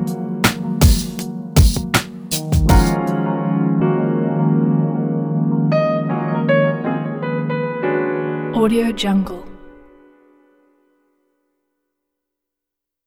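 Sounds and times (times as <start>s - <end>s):
soulful lounge music: 0.0s - 8.6s.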